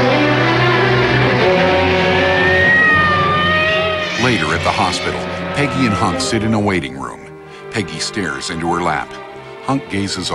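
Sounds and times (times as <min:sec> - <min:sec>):
thin rising whine: 0:00.0 - 0:06.8
ambulance engine roaring as it speeds off: 0:00.0 - 0:07.8
speech: 0:04.3 - 0:10.3.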